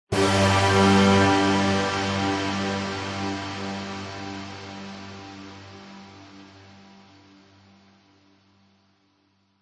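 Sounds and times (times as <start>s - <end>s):
dramatic sudden cinematic orchestral hit: 0.1s - 3.8s.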